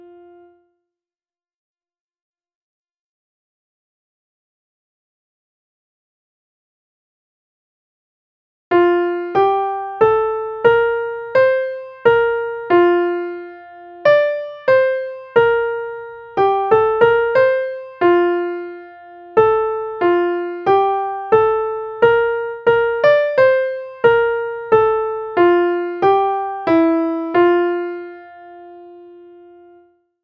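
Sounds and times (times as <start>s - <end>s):
melody: 8.8s - 29.8s.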